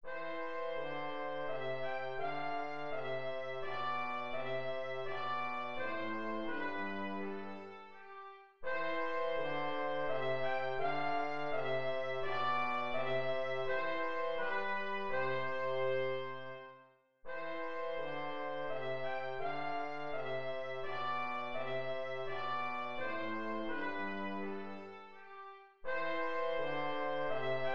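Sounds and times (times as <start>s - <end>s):
minuet in a major key: 0.0s - 27.7s.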